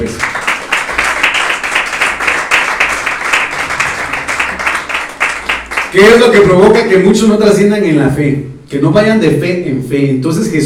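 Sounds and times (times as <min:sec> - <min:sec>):
speech: 0:00.0 - 0:00.3, 0:06.0 - 0:10.6
audience applause: 0:00.0 - 0:06.0.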